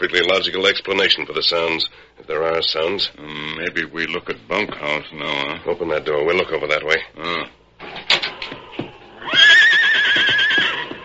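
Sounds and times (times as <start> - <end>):
speech: 0.0 - 7.9
horse whinnying: 9.2 - 11.0.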